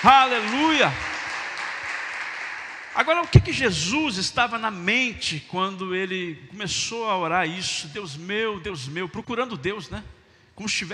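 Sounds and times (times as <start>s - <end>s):
speech: 0.0s - 1.1s, 3.0s - 10.9s
audience applause: 0.0s - 3.4s.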